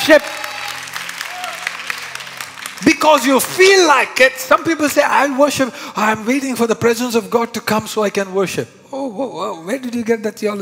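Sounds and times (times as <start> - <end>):
speech: 0.0 - 0.6, 2.8 - 10.6
audience clapping: 0.0 - 4.7.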